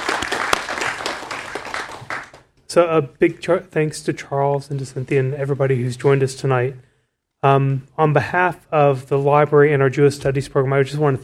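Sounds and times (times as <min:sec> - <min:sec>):
audience applause: 0:00.0 - 0:02.5
speech: 0:02.8 - 0:11.2.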